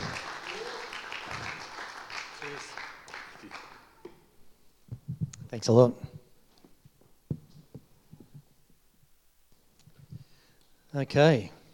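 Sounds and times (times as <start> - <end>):
audience applause welcoming a speaker: 0.0 - 4.0
speech: 5.5 - 6.1, 11.0 - 11.6.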